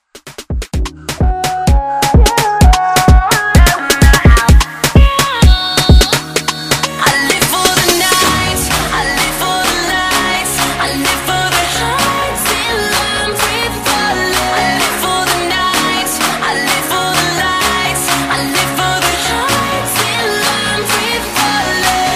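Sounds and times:
afrobeat music: 0:00.1 - 0:22.1.

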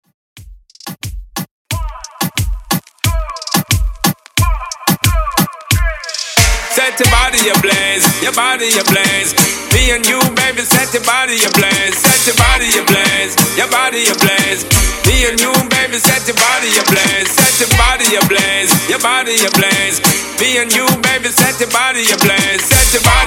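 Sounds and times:
clean reggae reggaeton beat at 90 BPM: 0:00.4 - 0:23.2.

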